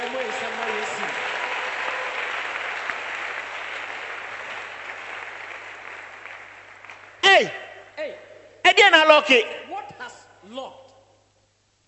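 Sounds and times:
audience clapping: 0.0 - 7.5
speech: 7.4 - 7.6, 8.8 - 9.6.

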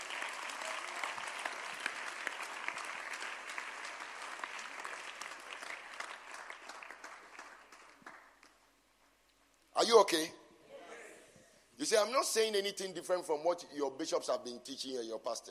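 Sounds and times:
audience clapping: 0.0 - 9.2
speech: 9.9 - 10.4, 11.8 - 15.5.

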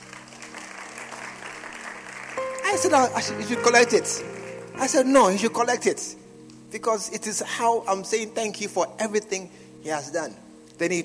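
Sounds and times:
crowd clapping: 0.0 - 4.8
speech: 2.7 - 11.0.

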